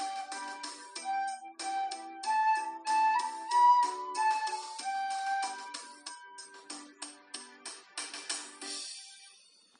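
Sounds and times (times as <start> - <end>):
flute exercise: 0.0 - 6.6.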